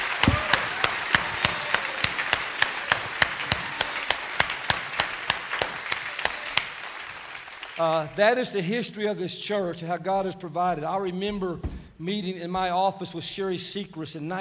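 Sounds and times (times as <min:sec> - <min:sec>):
round of applause: 0:00.0 - 0:08.2
speech: 0:07.8 - 0:14.3.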